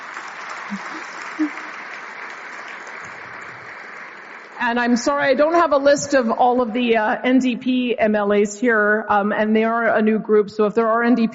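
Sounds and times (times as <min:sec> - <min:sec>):
audience applause: 0:00.0 - 0:04.7
speech: 0:00.7 - 0:01.6, 0:04.6 - 0:11.3.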